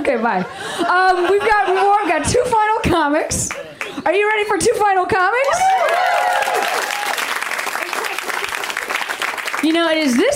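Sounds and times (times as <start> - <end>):
laughter: 0.0 - 2.8
speech: 0.1 - 6.5, 9.6 - 10.3
audience applause: 5.5 - 10.3.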